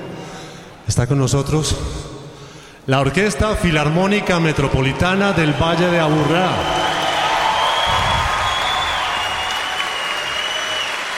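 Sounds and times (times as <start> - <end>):
speech: 0.9 - 2.1, 2.9 - 6.8
audience applause and cheering: 4.3 - 11.1.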